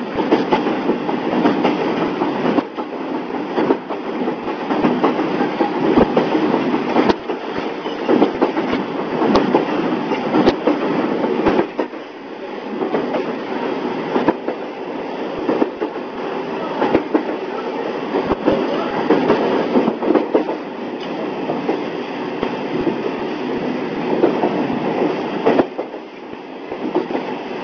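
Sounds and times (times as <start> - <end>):
Joumou Electric Railway DeHa 350 train departing Akagi Station: 0.0 - 27.6.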